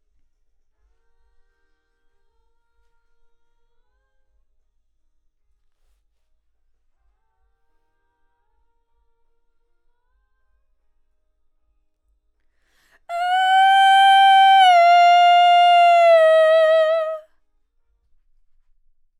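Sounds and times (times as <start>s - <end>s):
vocal: 13.1s - 17.2s.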